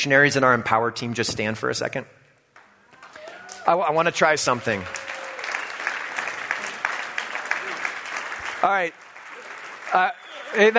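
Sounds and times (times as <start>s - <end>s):
speech: 0.0s - 2.2s, 3.7s - 5.0s, 8.6s - 9.0s, 9.9s - 10.7s
audience applause: 3.0s - 10.7s.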